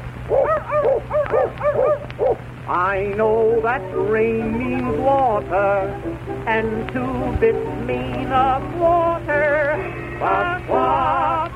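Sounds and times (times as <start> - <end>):
low steady hum: 0.0 - 11.5
little dog barking in high, yipping yaps: 0.3 - 2.4
speech: 2.7 - 11.2.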